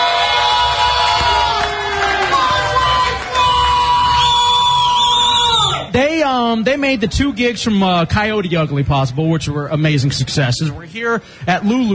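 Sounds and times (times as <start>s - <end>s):
club crowd cheering: 0.0s - 6.0s
speech: 6.5s - 11.9s.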